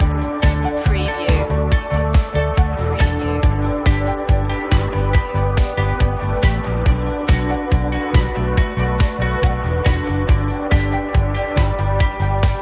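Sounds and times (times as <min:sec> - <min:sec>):
music loop: 0:00.0 - 0:12.6.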